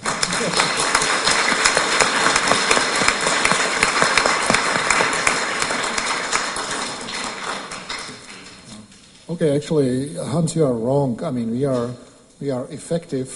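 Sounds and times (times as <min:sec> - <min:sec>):
audience applause: 0:00.0 - 0:08.7
speech: 0:09.4 - 0:13.3.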